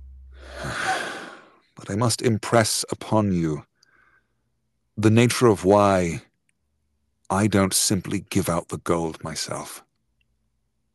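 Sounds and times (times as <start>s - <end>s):
big intake of breath: 0.3s - 1.6s
speech: 1.9s - 3.7s, 5.0s - 6.3s, 7.3s - 9.9s.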